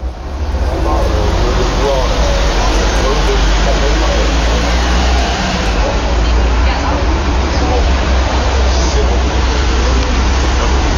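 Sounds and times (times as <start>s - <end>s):
low rumble of passing traffic including a metro, a car and a truck: 0.0s - 10.9s
murmur of many voices on a French café terrace: 0.0s - 10.9s.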